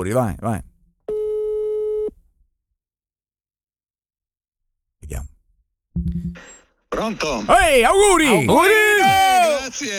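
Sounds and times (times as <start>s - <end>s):
speech: 0.0s - 0.7s, 6.0s - 9.9s
telephone line beep while a call is placed: 1.1s - 2.1s.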